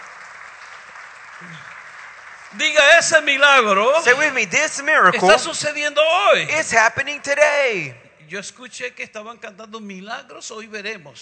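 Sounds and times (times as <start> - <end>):
congregation applauding during a bilingual church service: 0.0 - 5.4
speech: 1.4 - 1.8, 2.5 - 11.2.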